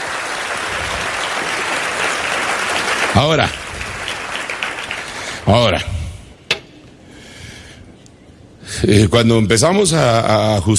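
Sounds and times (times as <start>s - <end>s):
audience applause: 0.0s - 5.7s
speech: 3.2s - 3.6s, 5.5s - 5.9s, 8.8s - 10.7s.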